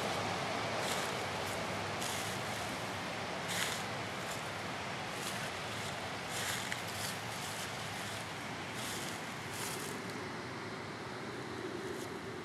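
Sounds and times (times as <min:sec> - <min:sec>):
waterside soundscape: 0:00.0 - 0:12.4.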